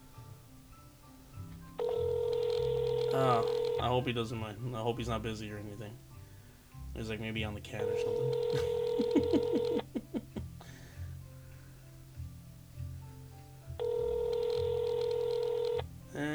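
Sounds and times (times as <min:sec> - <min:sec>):
long even phone ringing tone: 0:01.7 - 0:05.0, 0:07.8 - 0:10.1, 0:13.8 - 0:16.3
steady electronic dial tone: 0:01.8 - 0:04.0, 0:07.8 - 0:09.9, 0:13.8 - 0:16.3
speech: 0:03.2 - 0:06.1, 0:07.0 - 0:09.9
laughter: 0:07.8 - 0:10.8.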